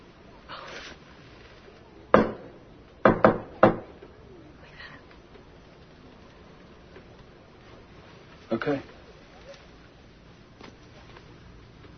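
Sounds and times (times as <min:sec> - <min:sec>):
knocking on a door: 0:02.1 - 0:04.0
speech: 0:08.6 - 0:09.0.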